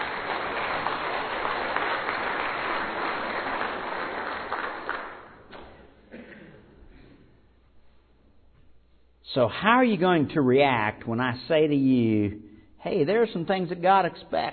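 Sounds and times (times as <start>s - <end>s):
audience applause: 0.0s - 5.4s
speech: 9.3s - 14.5s.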